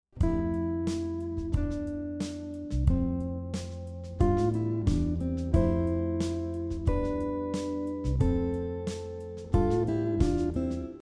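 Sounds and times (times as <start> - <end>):
guitar playing thirds and sixths variation: 0.2 - 11.0.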